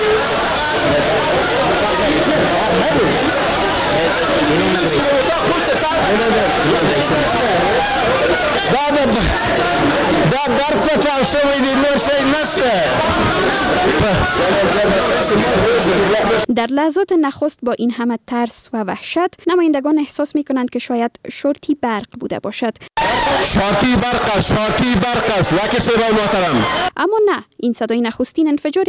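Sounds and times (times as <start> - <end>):
panicked crowd noisily rushing out: 0.0 - 16.5, 23.0 - 26.9
speech: 4.5 - 28.8.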